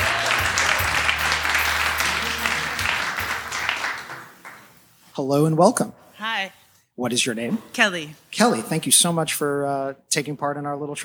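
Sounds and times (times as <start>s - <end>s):
audience applause welcoming a trivia quiz contestant: 0.0s - 4.7s
speech: 5.2s - 11.0s.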